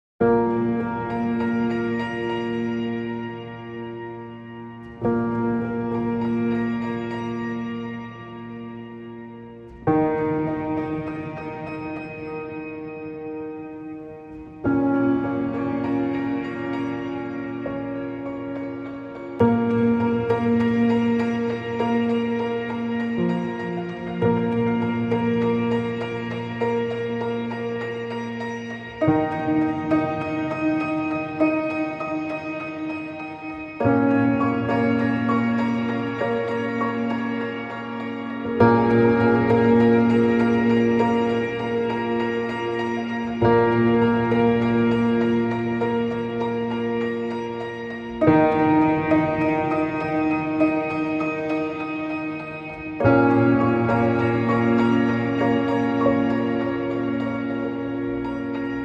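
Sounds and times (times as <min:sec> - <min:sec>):
pianos: 0:00.2 - 0:58.8.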